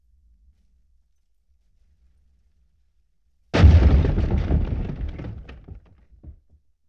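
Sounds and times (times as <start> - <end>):
explosion: 3.6 - 5.8.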